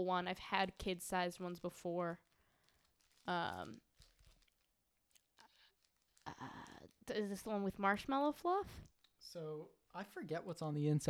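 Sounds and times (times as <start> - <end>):
speech: 0.0 - 2.2, 3.2 - 3.8, 6.3 - 11.0
candy bar wrapper crinkling: 0.8 - 9.2
chewing a Three Musketeers nougat candy bar: 2.4 - 7.1.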